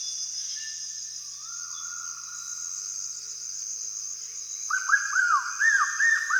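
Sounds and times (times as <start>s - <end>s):
nightjar calling in Sulawesi scrubland: 4.7s - 6.3s.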